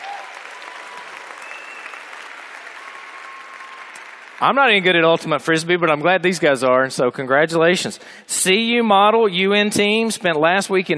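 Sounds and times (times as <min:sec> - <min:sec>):
crowd applauding: 0:00.0 - 0:05.1
speech: 0:04.4 - 0:10.9.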